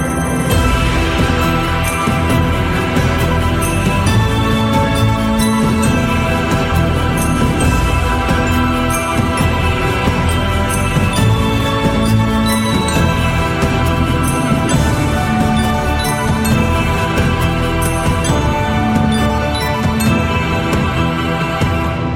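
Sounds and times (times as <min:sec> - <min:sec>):
western style ringtone: 0:00.1 - 0:22.0.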